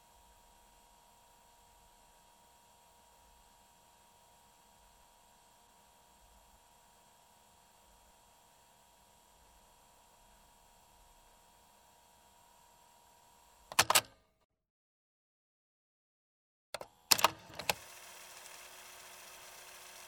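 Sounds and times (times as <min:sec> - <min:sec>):
telephone: 0:13.7 - 0:14.1, 0:16.8 - 0:20.0.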